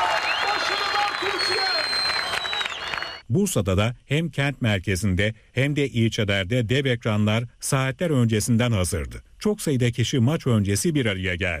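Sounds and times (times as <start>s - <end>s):
crowd cheering and applauding: 0.0s - 3.2s
speech: 3.3s - 11.5s.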